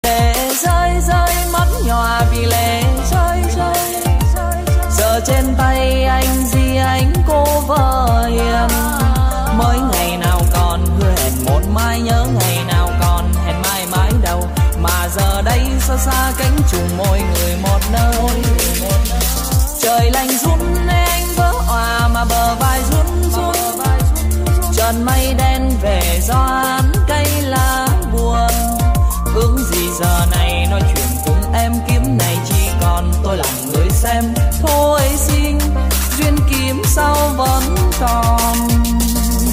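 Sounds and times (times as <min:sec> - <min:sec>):
TikTok EDM remix: 0:00.0 - 0:39.5.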